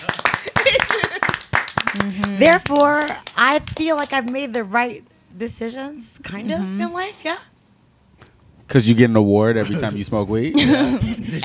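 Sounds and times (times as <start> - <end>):
laughter: 0.0 - 1.5, 9.6 - 11.4
clapping applause: 0.0 - 4.6
speech: 2.0 - 7.5, 8.7 - 11.4.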